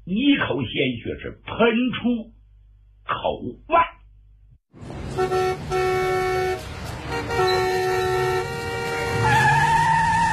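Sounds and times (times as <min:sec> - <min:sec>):
speech: 0:00.1 - 0:02.4, 0:03.1 - 0:03.9
traffic engine and road rumble: 0:04.1 - 0:10.3
car horn honking: 0:05.1 - 0:09.8
car brakes screeching in traffic: 0:06.8 - 0:10.3.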